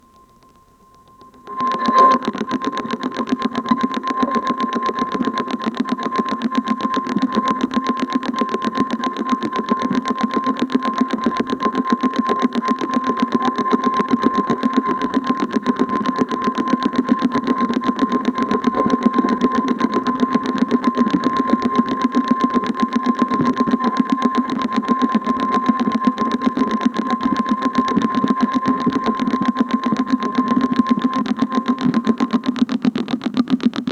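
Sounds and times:
navigation direction finder sounds: 0:00.0 - 0:33.8.

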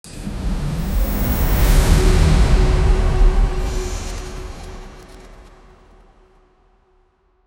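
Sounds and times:
cosmic portal entrance sound: 0:00.1 - 0:05.8.

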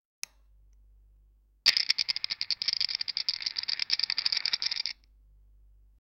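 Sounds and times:
game show wheel spinning: 0:01.7 - 0:05.0.

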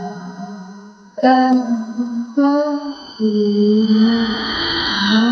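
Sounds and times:
mental tension sound: 0:01.2 - 0:05.3.

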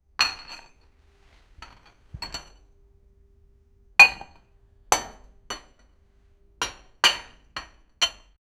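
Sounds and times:
sudden clinking of dishes: 0:00.2 - 0:02.7, 0:04.0 - 0:06.0, 0:06.6 - 0:08.4.

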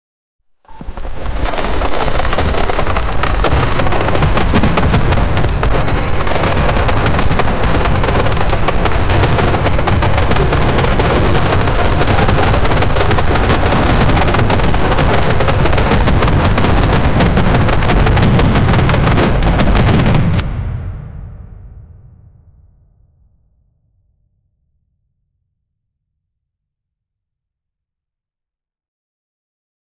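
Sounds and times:
intense battlefield sounds: 0:00.7 - 0:21.1.

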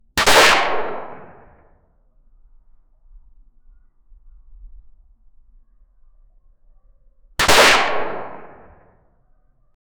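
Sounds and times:
single gunshot indoors: 0:00.2 - 0:01.6, 0:07.4 - 0:08.9.

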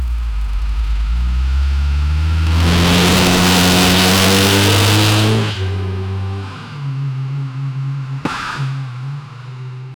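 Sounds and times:
realistic sports car: 0:00.0 - 0:09.9.

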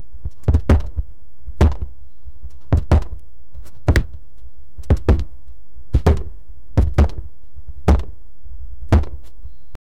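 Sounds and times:
boxing punches: 0:00.3 - 0:02.0, 0:02.6 - 0:04.2, 0:04.8 - 0:05.3, 0:05.9 - 0:08.2, 0:08.9 - 0:09.4.

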